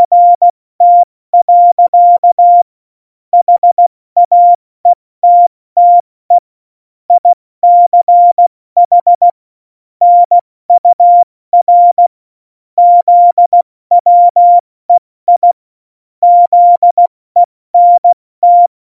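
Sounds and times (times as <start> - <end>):
CW Morse code beeps: 0.0 - 2.7, 3.4 - 4.6, 5.2 - 6.4, 7.1 - 9.4, 10.0 - 12.1, 12.8 - 14.6, 15.3 - 15.6, 16.2 - 18.7.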